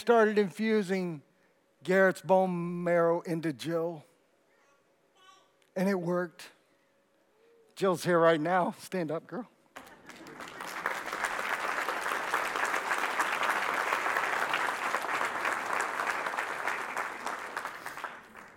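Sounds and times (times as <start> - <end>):
speech: 0.0 - 4.1, 5.8 - 6.6, 7.8 - 9.5
audience applause: 9.8 - 18.5.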